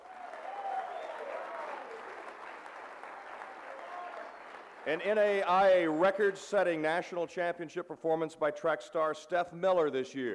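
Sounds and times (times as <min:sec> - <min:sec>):
crowd applauding: 0:00.0 - 0:05.1
speech: 0:04.8 - 0:10.3.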